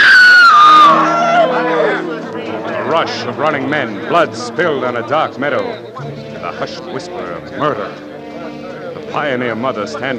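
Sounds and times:
woman screaming: 0.0 - 1.9
speech: 3.0 - 8.1, 9.1 - 10.1.

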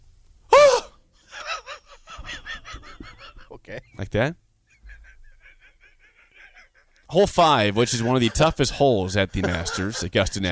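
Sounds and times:
man shrieking in excitement: 0.5 - 1.0
laughter: 1.3 - 4.0, 4.7 - 10.5
speech: 3.7 - 4.4, 7.1 - 10.5.

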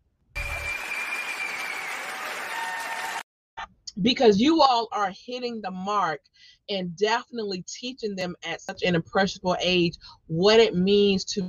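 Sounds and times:
audience applause honoring parents at an event: 0.4 - 3.2
speech: 4.0 - 11.4.

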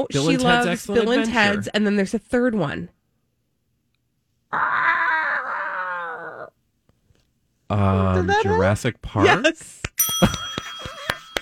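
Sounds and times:
speech: 0.0 - 3.0, 7.7 - 10.4
person imitating a dinosaur roar: 4.5 - 6.6.

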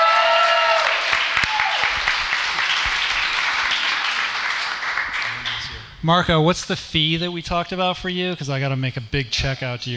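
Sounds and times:
audience applause: 0.0 - 5.8
speech: 6.0 - 9.9.

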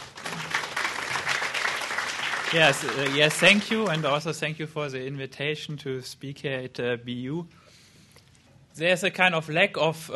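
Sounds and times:
audience applause at a university lecture: 0.0 - 4.3
speech: 2.5 - 7.6, 8.8 - 10.1.

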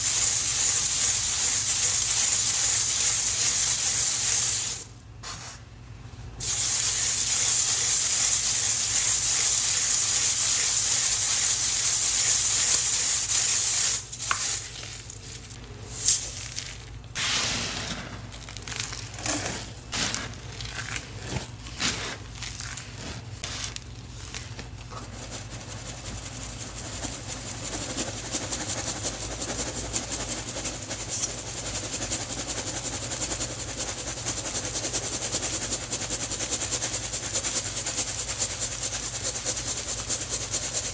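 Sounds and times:
cornstarch sifting hiss: 0.0 - 5.6, 6.4 - 40.9
cornstarch crunching: 14.1 - 35.6.

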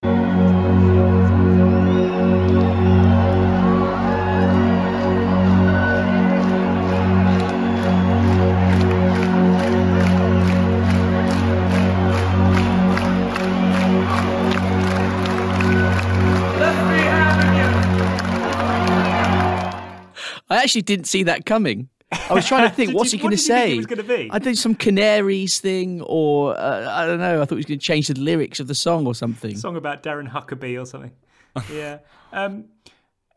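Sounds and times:
large concert crowd cheering: 0.0 - 20.1, 22.3 - 24.4
scattered clapping: 2.4 - 20.1
speech: 20.6 - 32.8
laughter: 22.1 - 24.9.

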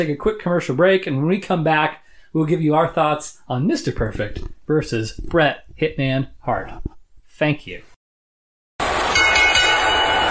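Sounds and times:
speech: 0.0 - 7.9
crowd roar: 8.8 - 10.2
wrestling match starting bell clanging: 9.0 - 10.2.

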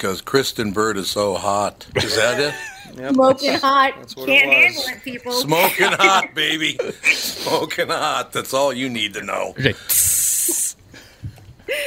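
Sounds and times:
speech: 0.0 - 10.2
laughter: 2.0 - 8.2
sizzling hiss sound effect: 9.8 - 10.8.

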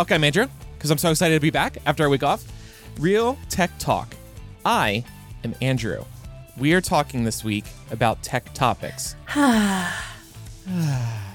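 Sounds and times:
speech: 0.0 - 11.2
deep breath: 2.5 - 3.0, 9.3 - 11.3.

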